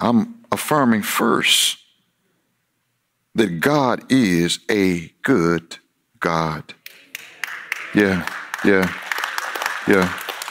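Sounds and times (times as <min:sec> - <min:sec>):
speech: 0:00.0 - 0:01.8, 0:03.4 - 0:06.8, 0:07.9 - 0:09.0, 0:09.8 - 0:10.3
church congregation clapping weakly: 0:06.8 - 0:10.4.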